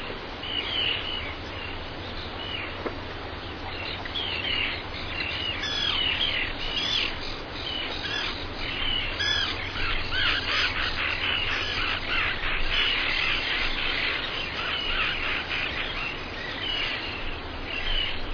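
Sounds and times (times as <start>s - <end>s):
seabirds: 0.0s - 18.3s.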